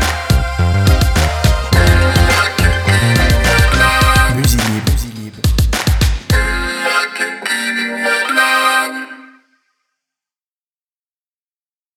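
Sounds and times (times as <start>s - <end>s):
street funk music: 0.0s - 8.1s.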